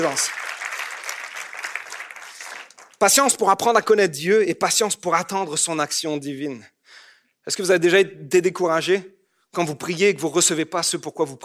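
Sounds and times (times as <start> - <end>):
speech: 0.0 - 0.5, 3.0 - 6.8, 7.4 - 11.4
audience applauding: 0.0 - 3.1.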